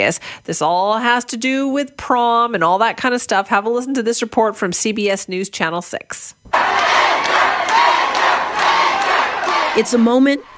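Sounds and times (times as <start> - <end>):
speech: 0.0 - 6.7, 9.8 - 10.5
students cheering and chanting: 6.5 - 10.5.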